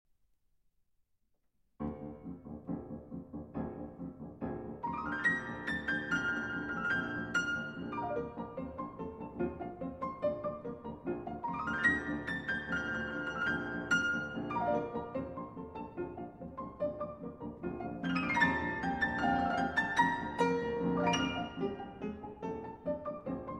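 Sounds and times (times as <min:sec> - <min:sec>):
piano four-hands piece: 0:01.8 - 0:23.5.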